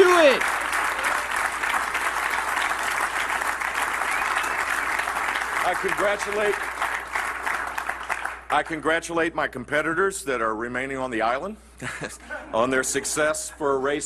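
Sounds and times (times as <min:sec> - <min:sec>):
audience applause: 0:00.0 - 0:08.6
speech: 0:05.8 - 0:06.8, 0:08.5 - 0:14.0.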